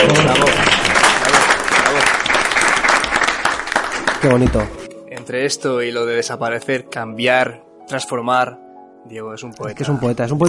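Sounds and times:
audience applause: 0:00.0 - 0:04.8
speech: 0:04.2 - 0:10.4.

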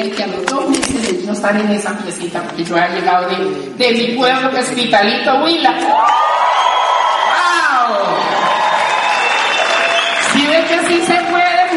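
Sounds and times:
speech: 0:00.0 - 0:06.3
audience applauding and cheering: 0:05.9 - 0:11.7.

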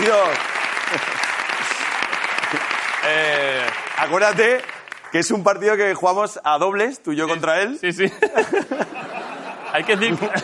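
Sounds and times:
speech: 0:00.0 - 0:01.3, 0:02.5 - 0:03.4, 0:04.0 - 0:10.4
audience applause: 0:00.0 - 0:05.3
laughter: 0:00.8 - 0:02.7, 0:07.3 - 0:10.4.

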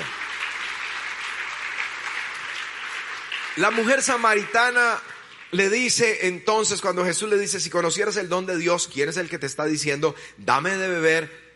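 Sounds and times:
audience applauding: 0:00.0 - 0:06.7
speech: 0:03.6 - 0:11.4.

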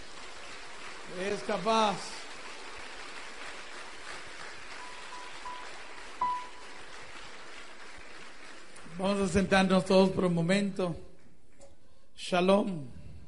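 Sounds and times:
audience applauding loudly: 0:00.0 - 0:10.0
speech: 0:01.1 - 0:02.2, 0:09.0 - 0:11.1, 0:12.2 - 0:13.0.

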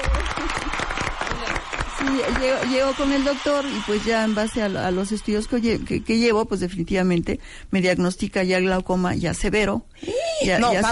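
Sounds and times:
audience applause: 0:00.0 - 0:06.2
speech: 0:02.0 - 0:10.9.

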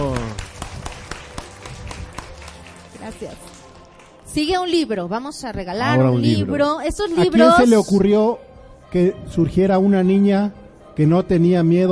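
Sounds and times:
applause: 0:00.0 - 0:04.6
speech: 0:03.1 - 0:03.6, 0:04.4 - 0:11.9.

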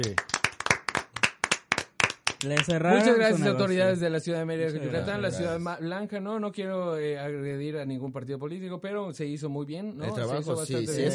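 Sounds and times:
speech: 0:00.0 - 0:00.3, 0:02.4 - 0:11.1
applause: 0:00.0 - 0:03.3.

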